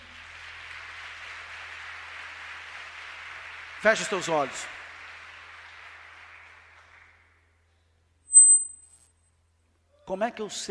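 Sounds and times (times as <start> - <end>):
applause: 0.0 - 7.7
speech: 3.8 - 4.8, 10.1 - 10.6.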